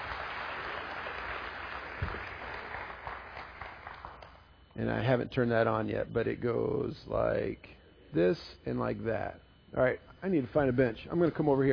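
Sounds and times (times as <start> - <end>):
round of applause: 0.0 - 4.4
speech: 4.8 - 11.7.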